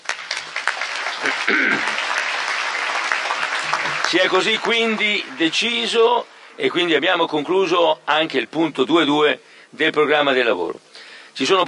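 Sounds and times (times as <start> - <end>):
assembly applause of approval: 0.0 - 6.4
speech: 4.1 - 10.8, 11.4 - 11.6.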